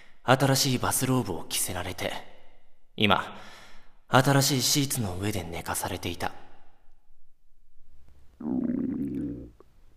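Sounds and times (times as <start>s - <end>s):
speech: 0.3s - 2.3s, 3.0s - 3.5s, 4.1s - 6.4s, 8.4s - 8.6s
hungry stomach growling: 8.4s - 9.6s.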